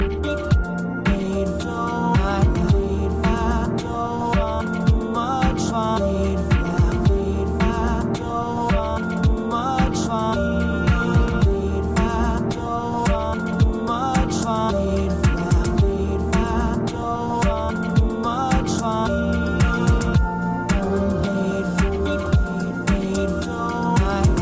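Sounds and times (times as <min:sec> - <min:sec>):
beat: 0:00.0 - 0:24.4.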